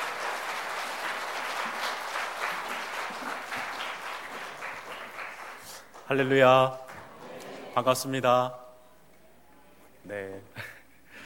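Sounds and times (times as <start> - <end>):
audience applause: 0.0 - 8.0
speech: 6.1 - 6.8, 7.8 - 8.6.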